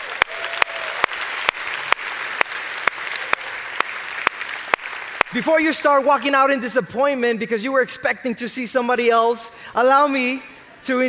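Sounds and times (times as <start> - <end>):
audience applause: 0.0 - 5.4
speech: 5.3 - 11.0.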